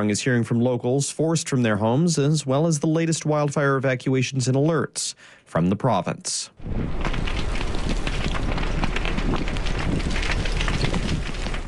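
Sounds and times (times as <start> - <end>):
speech: 0.0 - 8.0
wind howling beside Westside Road wildfire: 6.6 - 11.6.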